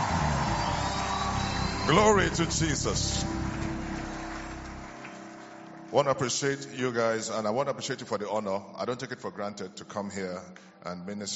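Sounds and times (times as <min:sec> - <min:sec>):
crowd applauding: 0:00.0 - 0:06.2
speech: 0:01.9 - 0:03.6, 0:05.9 - 0:11.3.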